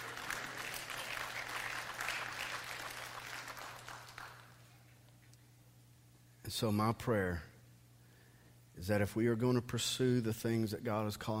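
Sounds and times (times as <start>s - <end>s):
audience clapping: 0.0s - 4.8s
speech: 6.5s - 7.5s, 8.8s - 11.3s.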